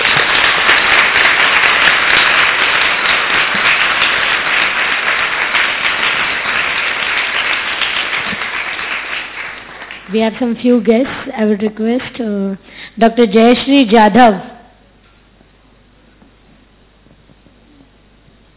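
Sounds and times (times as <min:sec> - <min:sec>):
audience applause: 0:00.0 - 0:10.4
speech: 0:10.1 - 0:14.5.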